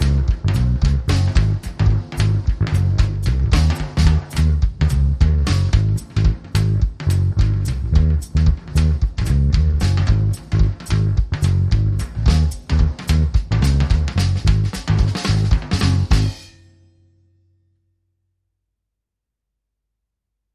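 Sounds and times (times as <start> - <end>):
electric jive bass line: 0.0 - 16.4.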